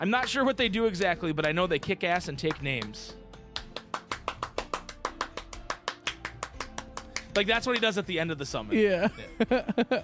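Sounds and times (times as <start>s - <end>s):
speech: 0.0s - 3.2s, 7.4s - 10.0s
hand clapping: 0.2s - 8.1s
laughter: 8.7s - 10.0s.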